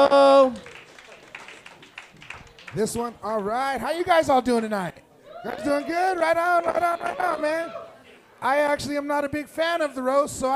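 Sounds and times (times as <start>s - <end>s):
audience applause: 0.2s - 3.1s
speech: 2.8s - 7.8s, 8.4s - 10.5s.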